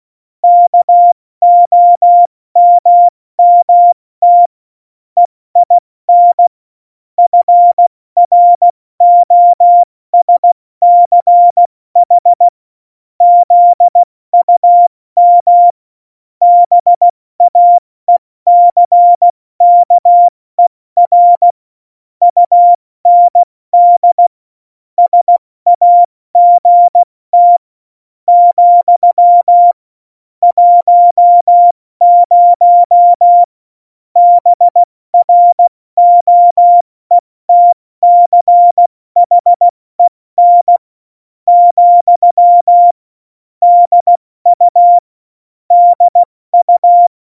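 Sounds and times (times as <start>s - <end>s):
CW Morse code beeps: 0.4s - 4.5s, 5.6s - 6.5s, 7.2s - 12.5s, 13.2s - 15.8s, 16.4s - 17.8s, 18.5s - 20.3s, 21.0s - 21.6s, 22.2s - 24.3s, 25.0s - 27.7s, 28.3s - 29.8s, 30.4s - 33.5s, 34.2s - 40.8s, 41.5s - 43.0s, 43.6s - 45.1s, 45.7s - 47.3s.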